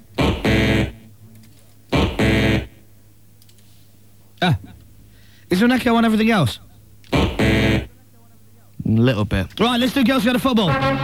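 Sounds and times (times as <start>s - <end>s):
wrong-answer buzzer sound effect: 0.2s - 1.1s, 1.9s - 2.8s, 7.1s - 8.0s
speech: 4.4s - 4.7s, 5.5s - 7.2s, 8.9s - 11.0s.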